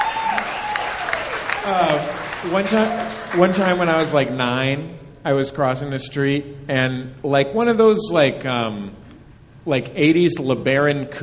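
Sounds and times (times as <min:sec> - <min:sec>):
cheers and whoops: 0:00.0 - 0:03.2
audience clapping: 0:00.0 - 0:04.4
speech: 0:01.6 - 0:09.0, 0:09.6 - 0:11.2.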